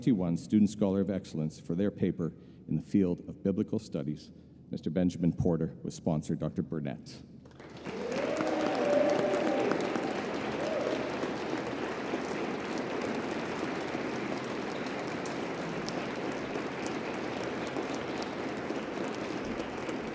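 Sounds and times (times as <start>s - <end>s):
speech: 0.0s - 7.3s
crowd audience applause: 7.5s - 20.1s.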